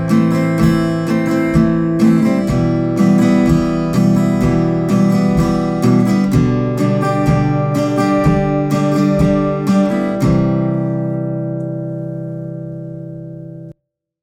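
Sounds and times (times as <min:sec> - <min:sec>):
rhythmic sixteenth notes: 0:00.0 - 0:11.0.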